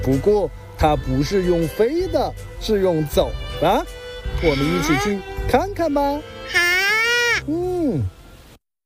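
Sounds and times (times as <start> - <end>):
speech: 0.0 - 6.6, 7.4 - 8.2
reindeer calls from a migrating herd: 4.3 - 5.2.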